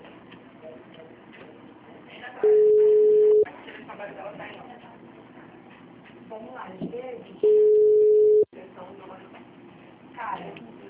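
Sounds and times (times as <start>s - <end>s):
phone call tone while placing a call: 2.4s - 3.5s, 7.4s - 8.5s
speech: 6.3s - 7.7s.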